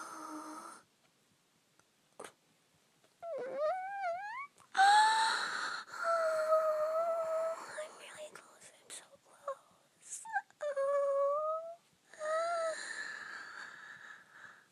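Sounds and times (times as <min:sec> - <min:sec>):
woman whimpering: 0:03.2 - 0:08.0, 0:10.1 - 0:13.6.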